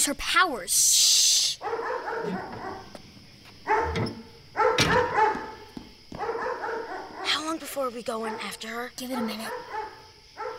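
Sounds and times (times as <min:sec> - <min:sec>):
speech: 0:00.0 - 0:02.9, 0:07.5 - 0:09.8
dog barking: 0:01.6 - 0:03.0, 0:03.6 - 0:07.4, 0:08.1 - 0:10.5.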